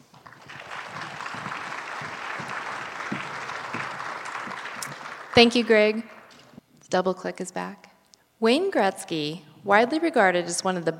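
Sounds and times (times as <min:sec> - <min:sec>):
audience applause welcoming a presenter to the stage: 0:00.0 - 0:06.3
speech: 0:05.4 - 0:06.2, 0:06.9 - 0:07.8, 0:08.4 - 0:10.9.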